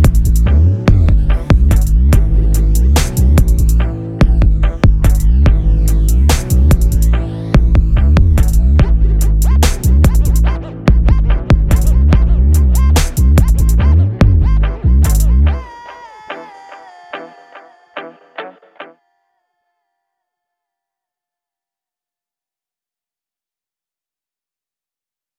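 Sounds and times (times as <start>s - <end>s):
instrumental beat: 0.0s - 15.6s.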